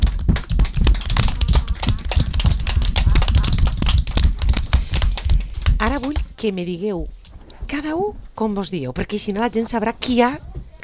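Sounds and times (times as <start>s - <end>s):
children applauding: 0.0s - 6.2s
speech: 6.0s - 10.8s.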